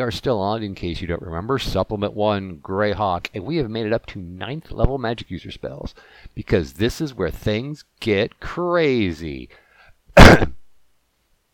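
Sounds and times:
speech: 0.0s - 9.6s, 10.2s - 10.6s
person coughing: 10.2s - 10.7s.

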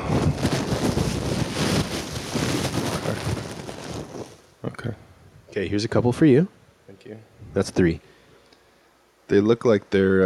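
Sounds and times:
rumbling and rustling inside a bag of honey mustard almonds: 0.0s - 4.5s
speech: 5.6s - 8.1s, 9.3s - 10.2s.

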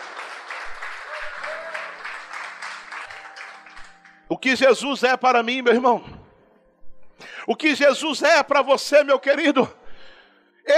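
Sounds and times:
audience applause: 0.0s - 4.2s
speech: 4.3s - 6.1s, 7.5s - 9.8s.

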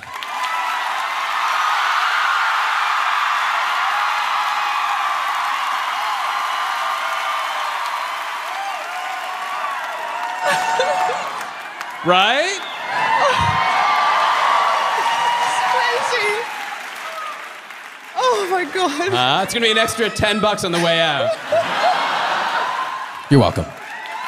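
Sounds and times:
audience applause: 0.0s - 24.2s
laughter: 10.4s - 11.5s, 12.8s - 14.2s, 18.2s - 23.7s
speech: 12.0s - 12.6s, 18.6s - 21.7s, 23.3s - 23.8s.

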